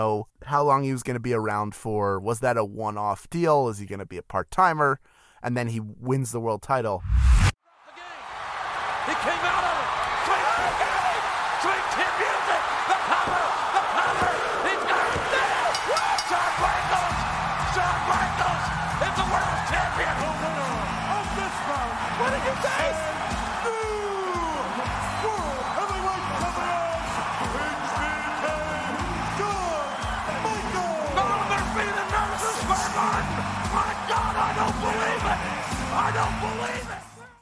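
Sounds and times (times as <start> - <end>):
speech: 0.0 - 7.4, 9.0 - 10.0
arena crowd cheering loudly: 7.6 - 37.4.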